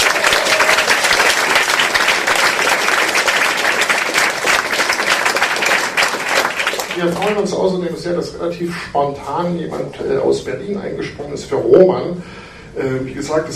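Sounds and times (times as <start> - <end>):
audience applause: 0.0 - 7.5
speech: 7.0 - 13.5.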